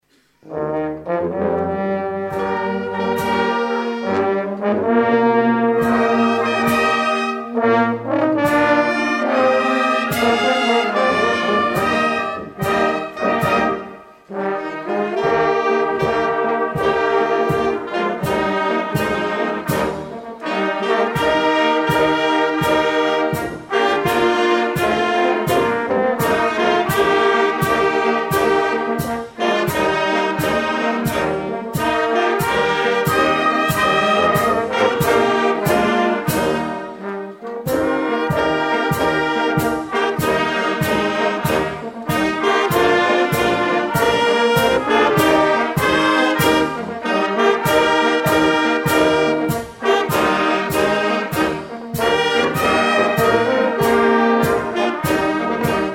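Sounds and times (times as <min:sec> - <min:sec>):
fanfare: 0:00.4 - 0:55.9.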